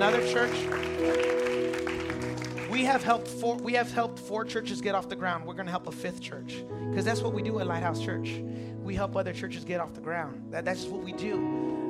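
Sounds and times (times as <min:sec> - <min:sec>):
speech: 0:00.0 - 0:01.4, 0:02.8 - 0:11.8
audience applause: 0:00.0 - 0:03.2.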